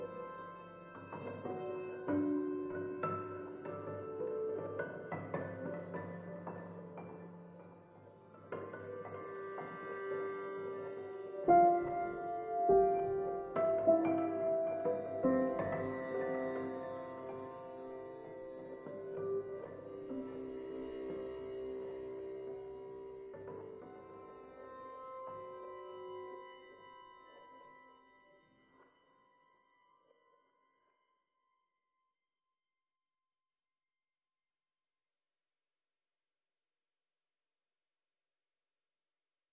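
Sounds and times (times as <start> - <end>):
piano only mix: 0.0 - 26.8.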